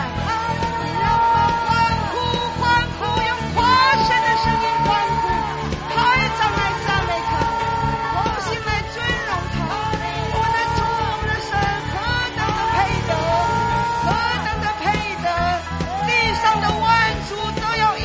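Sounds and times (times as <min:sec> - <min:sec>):
audience cheering: 0:00.0 - 0:18.0.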